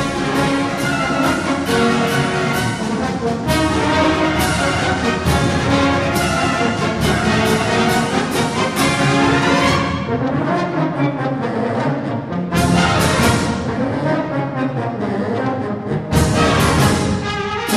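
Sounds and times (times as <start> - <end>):
march music: 0.0 - 17.7.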